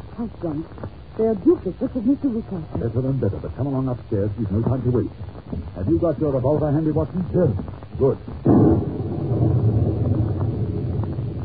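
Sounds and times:
speech: 0:00.2 - 0:08.6
thunder from a nearby lightning strike: 0:08.4 - 0:11.4.

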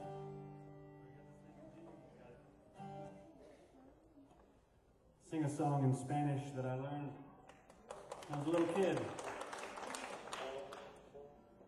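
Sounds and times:
speech: 0:05.3 - 0:07.3, 0:08.3 - 0:09.3
applause: 0:07.5 - 0:11.3.

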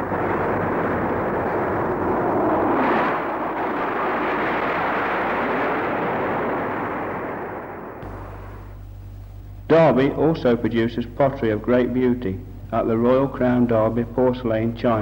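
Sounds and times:
Rolls-Royce aero engine roaring in Derby: 0:00.0 - 0:09.7
speech: 0:09.8 - 0:15.0.

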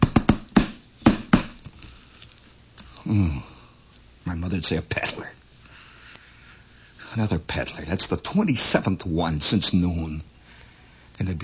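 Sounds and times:
knocking on a door: 0:00.0 - 0:01.6
speech: 0:03.1 - 0:03.5, 0:04.5 - 0:05.4, 0:07.2 - 0:10.3, 0:11.2 - 0:11.4.

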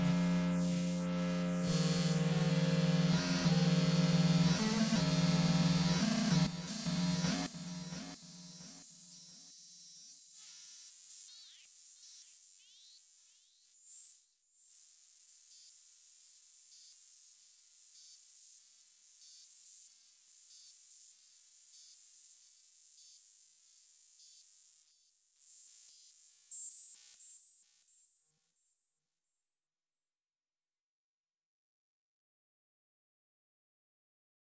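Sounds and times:
low soundscape: 0:00.0 - 0:08.2.

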